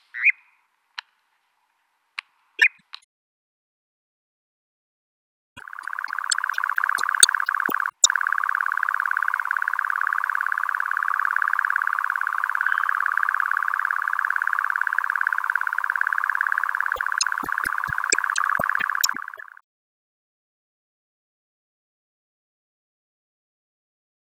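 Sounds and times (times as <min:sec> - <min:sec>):
European nightjar churring: 0:05.6 - 0:19.6.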